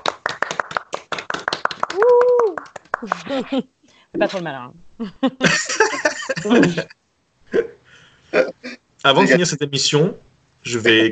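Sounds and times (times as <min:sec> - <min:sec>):
people clapping: 0:00.0 - 0:03.5
person cheering: 0:01.8 - 0:03.4
laughter: 0:03.0 - 0:03.6, 0:05.0 - 0:06.9
speech: 0:03.0 - 0:07.0, 0:08.3 - 0:11.1.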